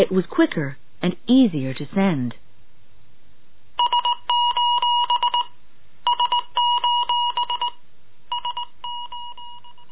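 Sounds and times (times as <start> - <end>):
speech: 0.0 - 2.4
Morse code SOS signal beeping: 3.8 - 9.9.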